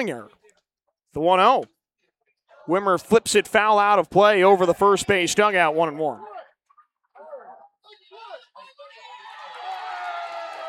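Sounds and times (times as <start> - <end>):
speech: 0.0 - 0.4, 1.1 - 1.8, 2.6 - 6.3
crowd applauding a fan's catch: 9.1 - 10.6.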